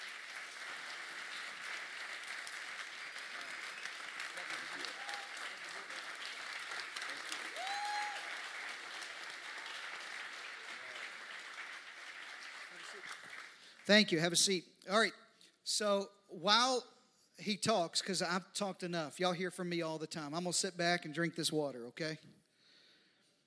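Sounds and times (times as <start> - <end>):
audience applause welcoming a pastor: 0.0 - 13.9
speech: 13.9 - 22.3.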